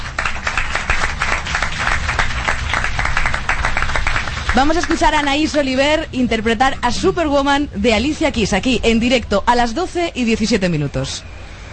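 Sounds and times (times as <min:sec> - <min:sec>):
audience applause: 0:00.0 - 0:05.6
speech: 0:04.6 - 0:11.4.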